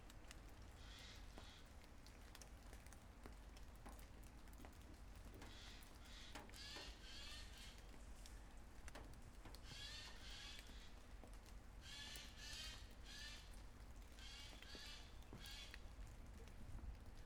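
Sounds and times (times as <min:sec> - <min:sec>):
light rain in Draguignan: 0:00.0 - 0:17.2
birds in Draguignan: 0:05.4 - 0:08.0, 0:09.5 - 0:11.1, 0:11.8 - 0:16.0.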